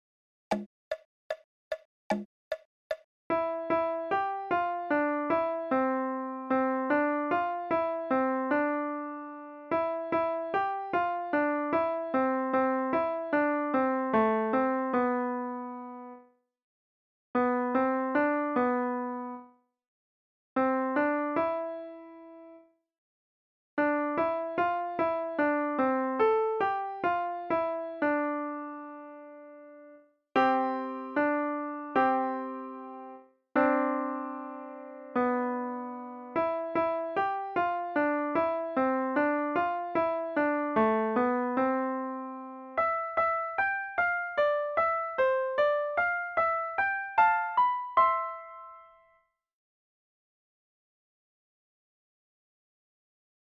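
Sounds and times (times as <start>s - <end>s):
piano piece: 3.3s - 16.2s, 17.4s - 19.5s, 20.6s - 22.6s, 23.8s - 49.2s.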